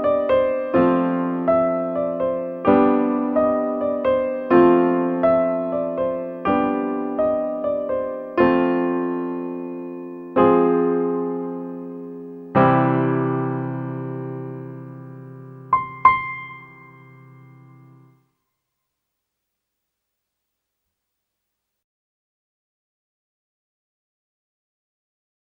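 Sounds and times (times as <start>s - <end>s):
solo piano: 0.0s - 18.3s.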